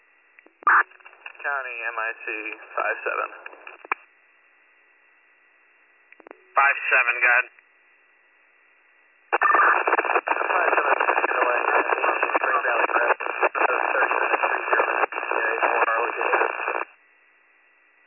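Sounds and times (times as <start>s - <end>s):
radio static: 0.6s - 4.0s, 6.6s - 7.5s, 9.3s - 16.9s
speech: 1.4s - 3.6s, 6.6s - 7.6s.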